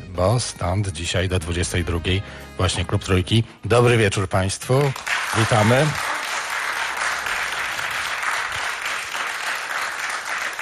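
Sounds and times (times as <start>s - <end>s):
speech: 0.2s - 6.1s
studio audience applauding at Trójka radio club in a Polish radio studio: 4.7s - 10.5s.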